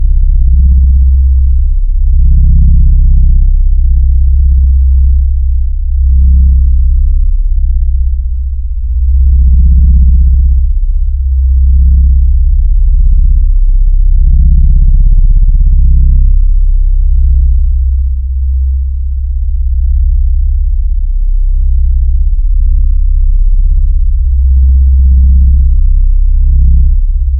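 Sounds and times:
deep forcefield hum: 0.0s - 27.3s.

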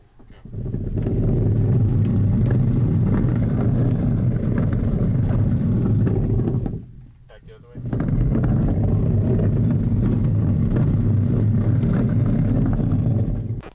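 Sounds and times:
low rumble: 1.0s - 13.6s.

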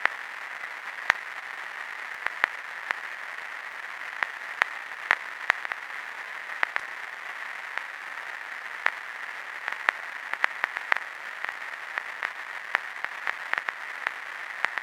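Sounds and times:
noisy vinyl crackle: 0.0s - 14.8s.

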